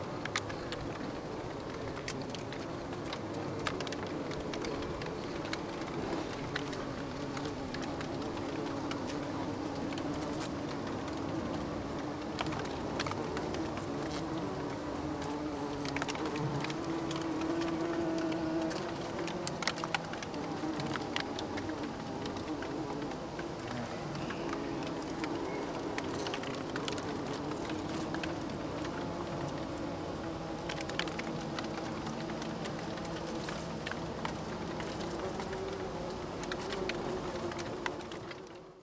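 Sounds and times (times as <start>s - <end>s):
bee buzzing: 0.0s - 38.8s.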